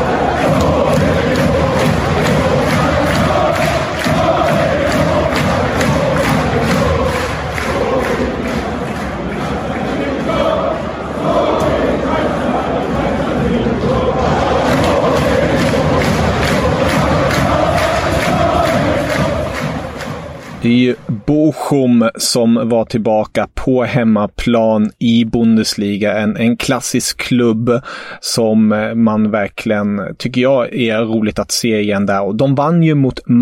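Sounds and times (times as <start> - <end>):
football stadium crowd singing and shouting: 0.0 - 22.0
speech: 22.2 - 33.4.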